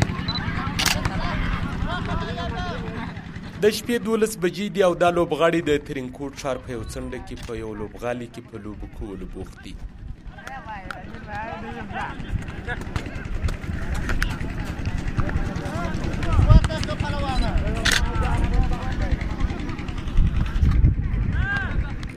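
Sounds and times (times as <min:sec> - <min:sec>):
generator engine running to light a playground in Tarinkot: 0:00.0 - 0:22.0
many overlapping voices talking: 0:00.0 - 0:22.1
laughter: 0:00.4 - 0:03.4, 0:11.1 - 0:16.4
speech: 0:03.6 - 0:10.0, 0:10.6 - 0:13.2.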